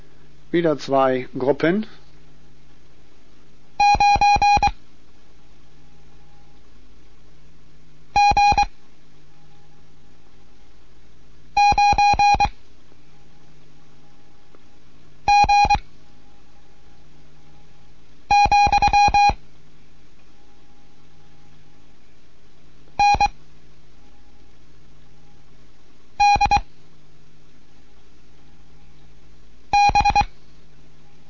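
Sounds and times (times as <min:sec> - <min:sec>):
speech: 0:00.5 - 0:02.0
Morse code beeps: 0:03.8 - 0:04.7, 0:08.2 - 0:08.7, 0:11.6 - 0:12.5, 0:15.3 - 0:15.8, 0:18.3 - 0:19.4, 0:23.0 - 0:23.3, 0:26.2 - 0:26.6, 0:29.7 - 0:30.3.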